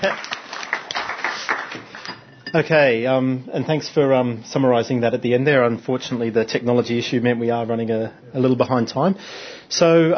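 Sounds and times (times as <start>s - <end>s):
speech: 0.0s - 0.3s, 2.5s - 10.1s
audience applause: 0.0s - 2.2s.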